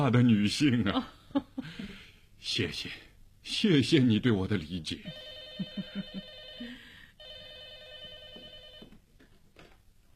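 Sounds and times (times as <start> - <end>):
speech: 0.0 - 6.2
telephone ringing for an overseas call: 5.1 - 9.0.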